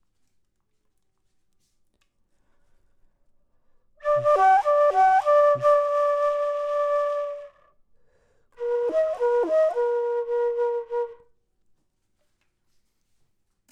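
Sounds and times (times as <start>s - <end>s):
low flute: 4.0s - 7.8s, 8.6s - 11.3s.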